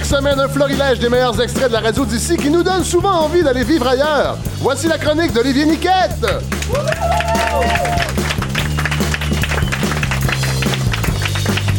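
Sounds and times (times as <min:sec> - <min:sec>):
speech: 0:00.1 - 0:08.3
audience applauding: 0:06.3 - 0:11.7.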